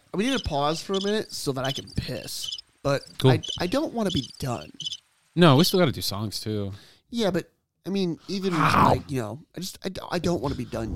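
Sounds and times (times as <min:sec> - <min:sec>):
crickets chirping from a soundboard button: 0:00.2 - 0:05.2
speech: 0:00.2 - 0:10.9.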